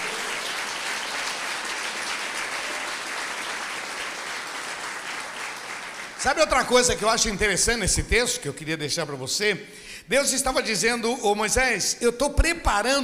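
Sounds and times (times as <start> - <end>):
audience applause: 0.0 - 6.4
speech: 6.2 - 13.0.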